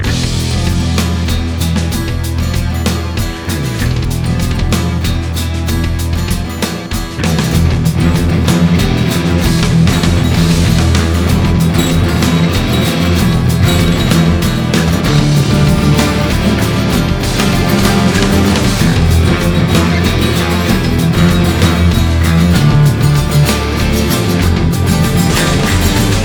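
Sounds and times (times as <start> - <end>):
rave music: 0.0 - 26.2.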